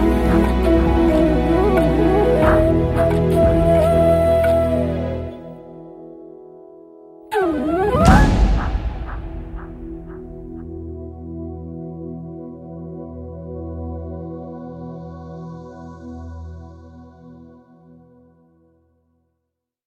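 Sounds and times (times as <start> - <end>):
flute instrumental: 0.0 - 12.2.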